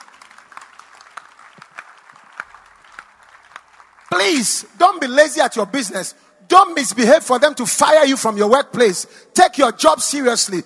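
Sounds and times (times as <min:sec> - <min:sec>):
audience clapping: 0:00.0 - 0:04.8
speech: 0:04.2 - 0:10.6.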